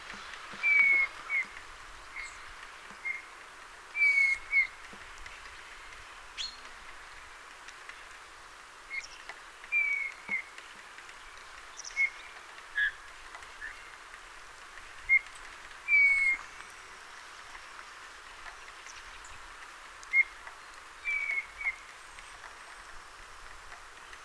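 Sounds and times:
Eurasian bullfinch Pyrrhula pyrrhula soft piping whistle calls: 0:00.6 - 0:01.5, 0:03.0 - 0:03.3, 0:04.0 - 0:04.7, 0:09.7 - 0:10.4, 0:15.9 - 0:16.4, 0:20.1 - 0:20.4, 0:21.0 - 0:21.8.

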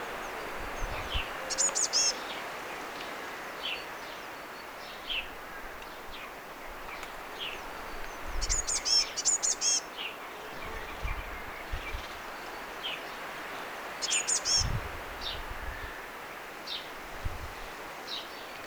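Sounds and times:
steady background hiss: 0:00.0 - 0:18.6
Eurasian blue tit calling: 0:00.8 - 0:02.2, 0:08.4 - 0:09.8, 0:14.0 - 0:14.7.

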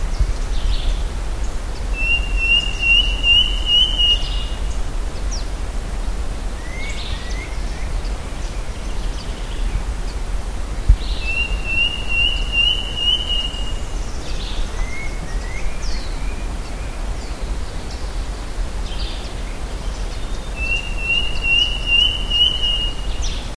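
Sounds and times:
low wind rumble: 0:00.0 - 0:23.5
bird whistled calls: 0:02.0 - 0:04.7, 0:11.0 - 0:16.9, 0:20.2 - 0:23.4.

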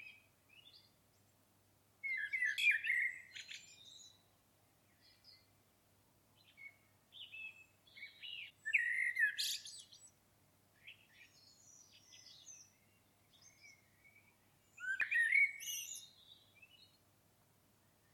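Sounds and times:
common blackbird singing: 0:02.0 - 0:04.3, 0:06.4 - 0:10.1, 0:10.8 - 0:17.0.

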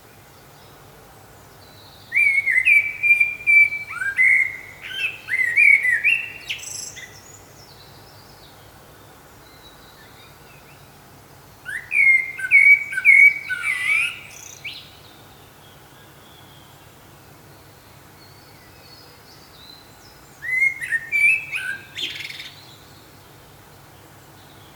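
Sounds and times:
common blackbird singing: 0:01.7 - 0:08.3, 0:11.6 - 0:15.2, 0:18.2 - 0:23.0.

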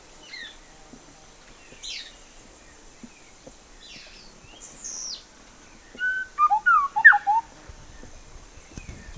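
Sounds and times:
bird whistling: 0:06.0 - 0:07.5.

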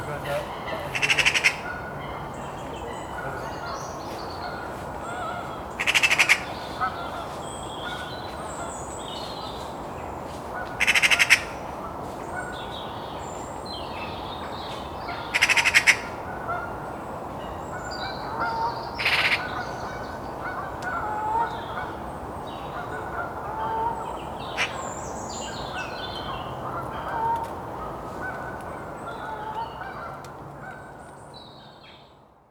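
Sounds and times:
other birds whistling and calling: 0:00.0 - 0:31.8
Eurasian magpie chattering: 0:00.3 - 0:01.7, 0:05.8 - 0:06.6, 0:10.8 - 0:11.6, 0:15.4 - 0:16.1, 0:19.0 - 0:19.5.

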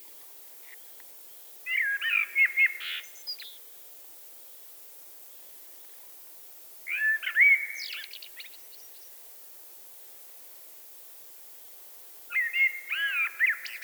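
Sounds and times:
Eurasian blackbird song: 0:00.0 - 0:03.7, 0:06.9 - 0:09.2, 0:12.3 - 0:13.8.

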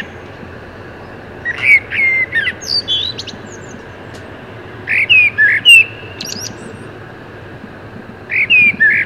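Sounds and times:
common blackbird Turdus merula singing: 0:00.0 - 0:00.3, 0:01.0 - 0:07.0, 0:08.2 - 0:09.0.

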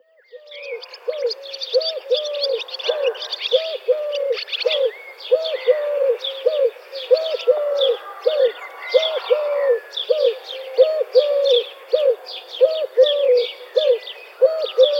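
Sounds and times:
Eurasian collared dove cooing: 0:00.4 - 0:14.9.

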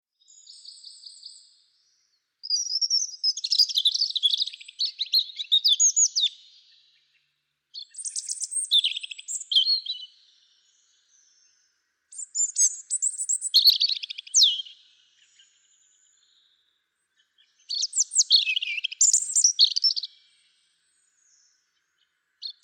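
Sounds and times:
European robin singing: 0:00.2 - 0:07.1, 0:07.7 - 0:22.6.

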